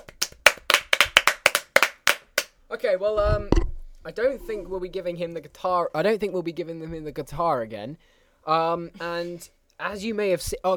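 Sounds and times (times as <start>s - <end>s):
hand clapping: 0.0s - 2.6s
speech: 2.7s - 10.7s.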